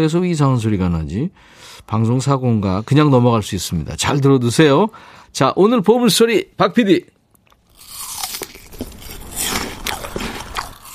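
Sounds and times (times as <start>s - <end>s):
speech: 0.0s - 7.2s
person biting and chewing a crisp apple: 7.3s - 10.9s.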